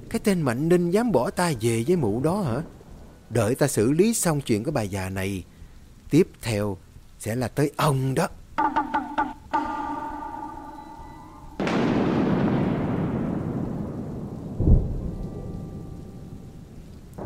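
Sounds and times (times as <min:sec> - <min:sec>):
thunderstorm with rolling thunder: 0:00.0 - 0:04.5, 0:09.7 - 0:17.2
speech: 0:00.1 - 0:05.5, 0:06.1 - 0:09.0.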